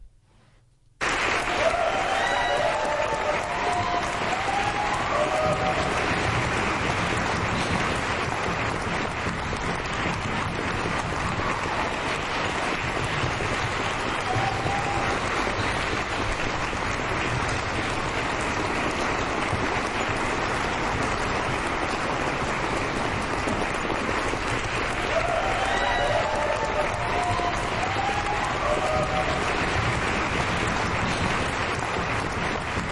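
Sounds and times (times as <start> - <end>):
group clapping in appreciation: 1.0 - 32.9.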